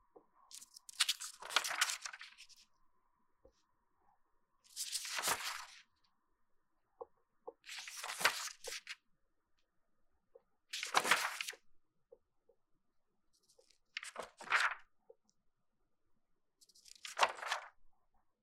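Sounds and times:
pages flipping: 0.5s - 2.6s, 4.7s - 5.8s, 7.7s - 9.0s, 10.8s - 11.6s, 13.6s - 14.8s, 16.6s - 17.7s.

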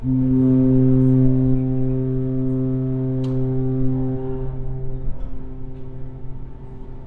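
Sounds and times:
ship horn: 0.0s - 7.0s.

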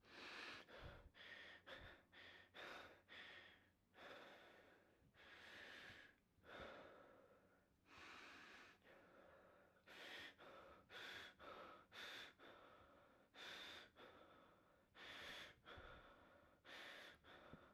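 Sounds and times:
man breathing heavily after running: 0.0s - 17.7s.

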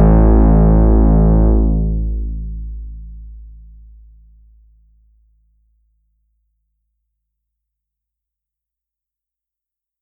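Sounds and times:
complex synthesizer waveform: 0.0s - 2.8s.

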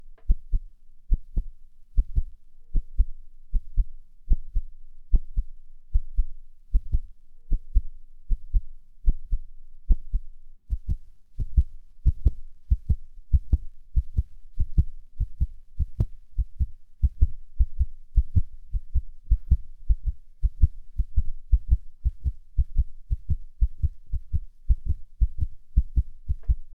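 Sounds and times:
heartbeat: 0.0s - 26.7s.

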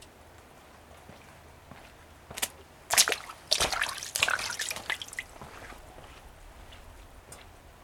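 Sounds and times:
puddle: 0.9s - 6.2s.

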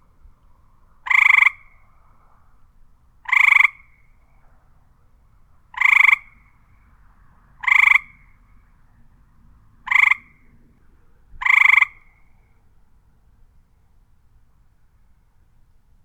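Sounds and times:
frog croaking: 1.0s - 1.8s, 3.2s - 4.0s, 5.7s - 6.4s, 7.6s - 8.3s, 9.9s - 10.4s, 11.4s - 12.2s.

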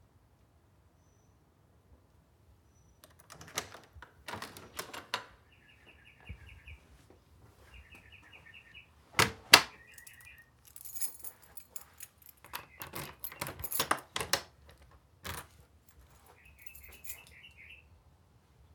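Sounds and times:
house door: 3.1s - 5.4s, 9.2s - 14.6s.

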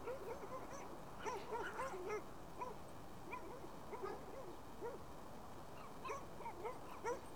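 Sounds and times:
dog barking: 0.1s - 2.8s, 3.3s - 5.0s, 6.0s - 7.2s.

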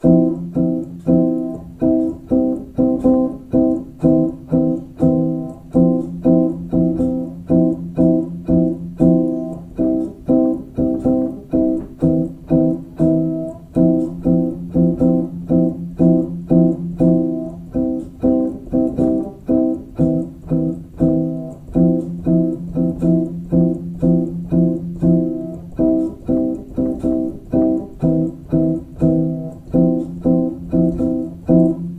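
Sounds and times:
upright piano chords: 0.0s - 31.9s.

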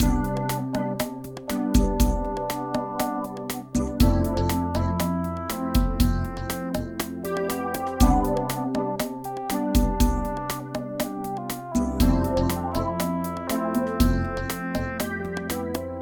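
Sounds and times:
pop music loop: 0.0s - 15.9s.

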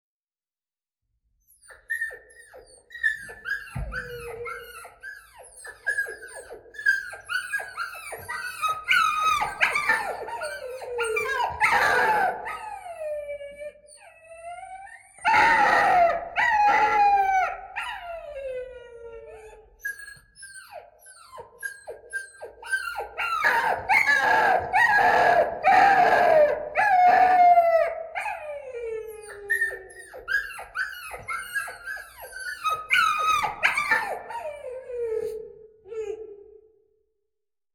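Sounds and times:
puppy: 1.4s - 36.7s.

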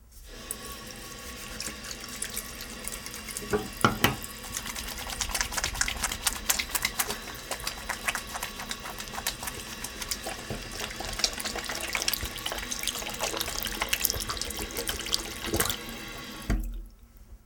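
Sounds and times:
washing hands: 0.2s - 16.7s.

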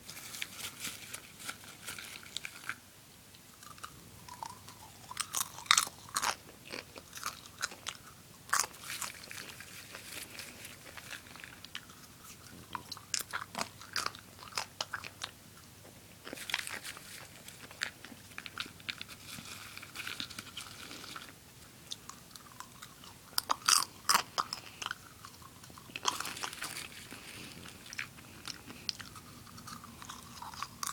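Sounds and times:
eating popcorn: 0.0s - 30.9s.

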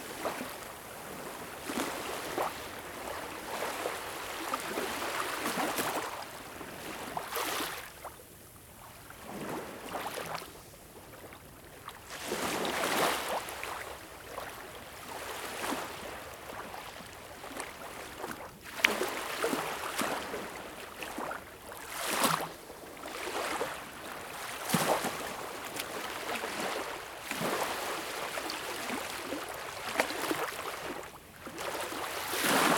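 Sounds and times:
waves at Baltic Sea shore: 0.0s - 8.1s, 11.9s - 32.7s.

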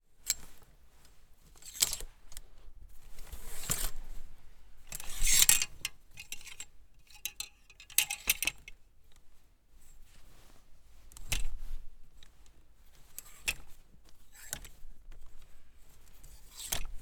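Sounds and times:
clothes hangers sliding on rail: 0.2s - 0.6s, 1.5s - 2.4s, 3.1s - 4.2s, 4.9s - 8.8s, 13.0s - 13.7s, 14.3s - 14.8s, 16.3s - 16.9s.

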